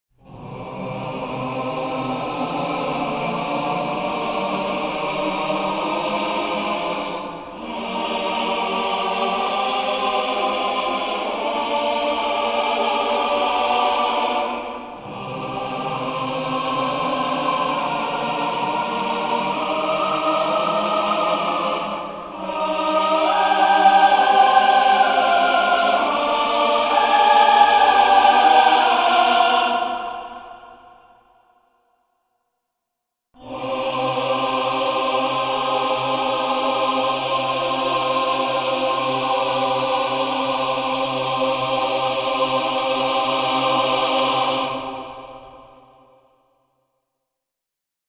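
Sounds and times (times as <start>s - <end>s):
choir singing: 0.2s - 31.8s, 33.4s - 46.6s.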